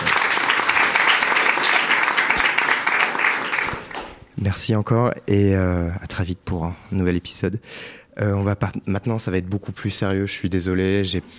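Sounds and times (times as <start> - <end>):
audience applause: 0.0 - 4.2
speech: 4.5 - 11.3.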